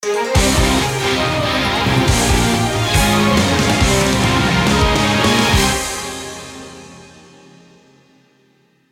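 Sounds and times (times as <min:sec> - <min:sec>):
versus screen jingle: 0:00.4 - 0:06.0.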